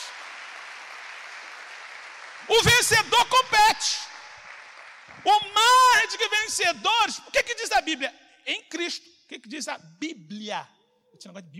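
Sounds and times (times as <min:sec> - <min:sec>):
audience applauding: 0:00.0 - 0:06.2
speech: 0:02.4 - 0:04.0, 0:05.3 - 0:11.5.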